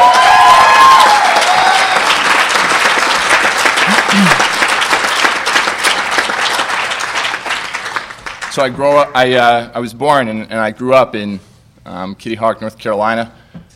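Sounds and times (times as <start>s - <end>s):
audience applause: 0.0s - 8.8s
speech: 8.6s - 13.4s.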